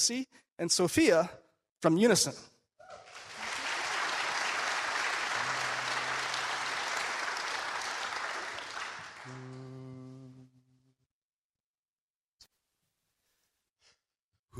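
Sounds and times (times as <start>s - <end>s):
speech: 0.0s - 2.5s
audience applause welcoming a group of singers: 3.0s - 9.7s.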